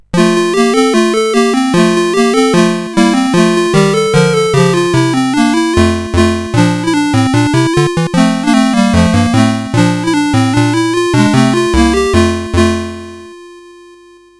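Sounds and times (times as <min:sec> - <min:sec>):
SID chip music on CSG 8580R5: 0:00.0 - 0:13.5.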